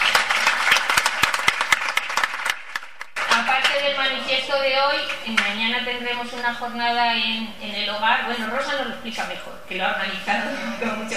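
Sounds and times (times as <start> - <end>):
audience applauding: 0.0 - 3.8
speech: 4.0 - 11.1.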